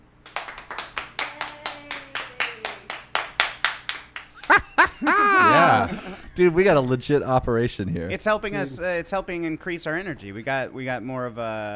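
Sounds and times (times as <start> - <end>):
audience hand claps: 0.2 - 5.0
laughter: 4.4 - 6.3
speech: 5.0 - 11.7.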